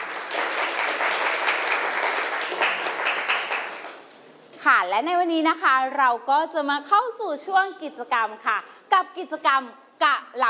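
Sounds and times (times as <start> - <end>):
students clapping: 0.0 - 4.2
speech: 4.8 - 10.4.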